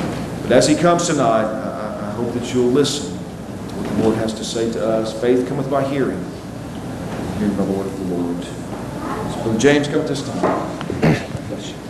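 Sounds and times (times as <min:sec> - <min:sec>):
speech: 0:00.5 - 0:03.1, 0:04.0 - 0:06.4, 0:07.4 - 0:08.6, 0:09.4 - 0:11.8
sneeze: 0:10.9 - 0:11.3.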